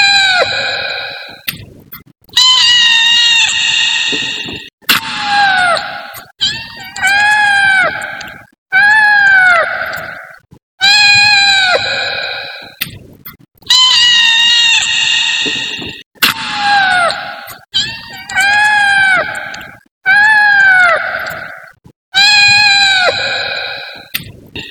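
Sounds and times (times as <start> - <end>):
cat: 2.4 - 12.8, 13.7 - 24.1.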